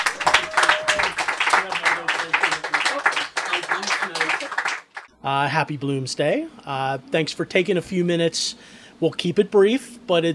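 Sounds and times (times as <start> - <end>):
audience applause at a Bloomsday event in Jameson Canio's Books: 0.0 - 5.1
speech: 5.2 - 10.3.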